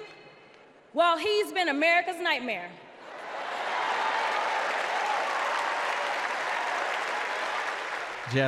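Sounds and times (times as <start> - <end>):
speech: 0.9 - 2.8
convention crowd applause: 3.1 - 8.4.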